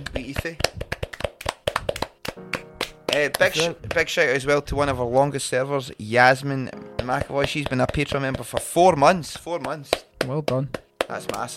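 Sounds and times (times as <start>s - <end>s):
hands clapping: 0.0s - 4.2s, 7.0s - 11.5s
speech: 0.1s - 0.8s, 3.2s - 11.5s.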